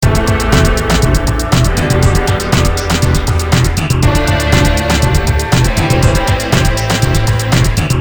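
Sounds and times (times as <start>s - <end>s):
depressing rock music: 0.0s - 7.9s.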